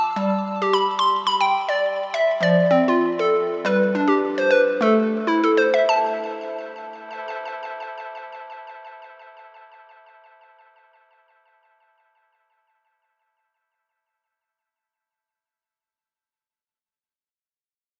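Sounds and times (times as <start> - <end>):
analog synthesizer: 0.2 - 10.1.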